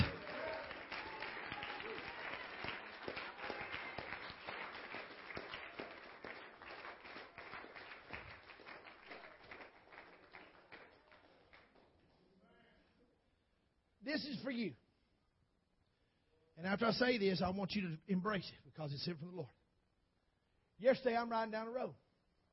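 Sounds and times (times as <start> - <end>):
audience hand clapping: 0.0 - 12.1
speech: 14.1 - 14.8, 16.7 - 19.6, 20.8 - 22.0.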